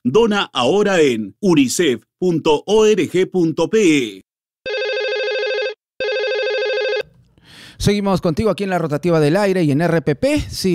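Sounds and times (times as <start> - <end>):
speech: 0.1 - 4.3, 7.8 - 10.7
telephone ringing: 4.6 - 7.1.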